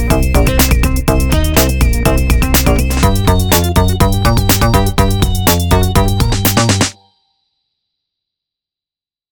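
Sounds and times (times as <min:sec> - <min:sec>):
creepy dance music: 0:00.0 - 0:07.0.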